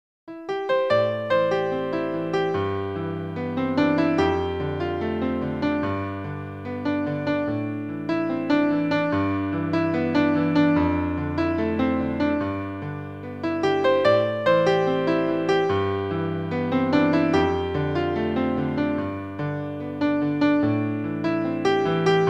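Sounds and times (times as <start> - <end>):
dreamy piano sounds: 0.3 - 22.2.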